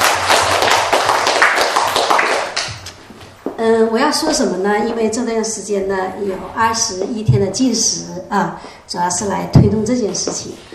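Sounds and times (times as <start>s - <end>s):
crowd applauding: 0.0s - 2.9s
speech: 4.0s - 10.7s.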